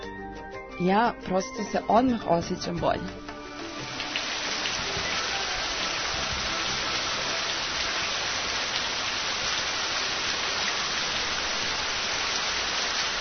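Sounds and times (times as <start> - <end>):
speech: 0.8 - 3.2
rain sound effect: 3.3 - 13.1.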